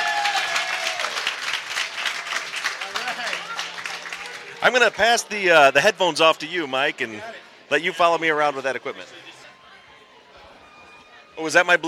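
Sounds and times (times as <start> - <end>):
audience applause: 0.0 - 5.3
speech: 4.6 - 9.2, 11.4 - 11.8.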